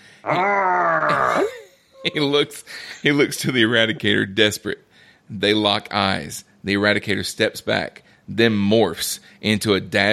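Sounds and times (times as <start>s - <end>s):
speech: 0.2s - 0.6s, 2.1s - 10.1s
man's defeated howl: 0.2s - 2.4s.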